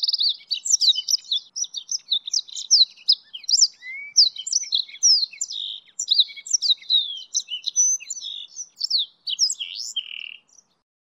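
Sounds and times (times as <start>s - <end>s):
goldfinch and canary hybrid singing a high varied warble: 0.0s - 10.8s.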